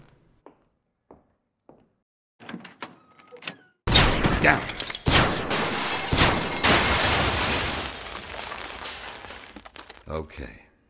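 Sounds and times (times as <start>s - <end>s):
blaster gunfire from a door trap: 3.9s - 7.8s
speech: 4.4s - 4.8s, 10.1s - 10.6s.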